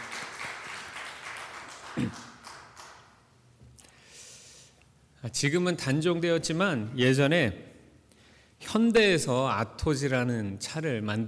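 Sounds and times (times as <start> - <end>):
audience applause: 0.0 - 3.1
speech: 2.0 - 2.4, 5.2 - 7.7, 8.7 - 11.2.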